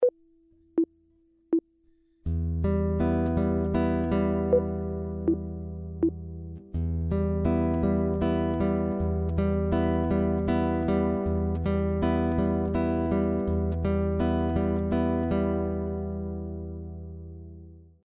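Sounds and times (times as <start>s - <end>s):
guitar chord: 2.3s - 17.8s.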